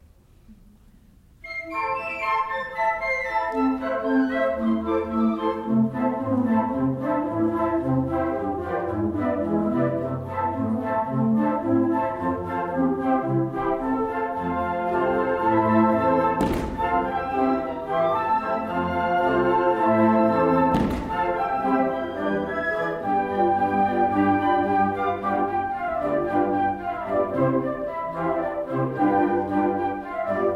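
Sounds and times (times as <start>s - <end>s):
flute playing folk dance suite: 1.4s - 30.5s.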